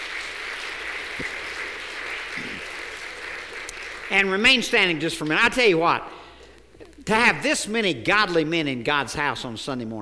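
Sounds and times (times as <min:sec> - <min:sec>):
audience applause: 0:00.0 - 0:04.8
speech: 0:01.2 - 0:01.4, 0:04.1 - 0:06.2, 0:07.1 - 0:10.0.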